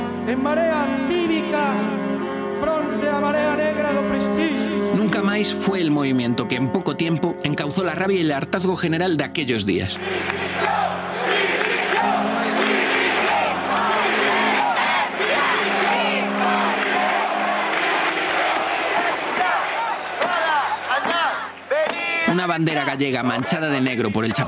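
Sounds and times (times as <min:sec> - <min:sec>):
speech: 0:00.2 - 0:10.8, 0:22.4 - 0:24.4
large protest crowd shouting and chanting: 0:10.0 - 0:22.4.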